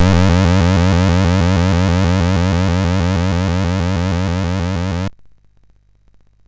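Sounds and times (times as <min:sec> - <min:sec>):
MOS 6581R2 SID chip music: 0:00.0 - 0:05.1.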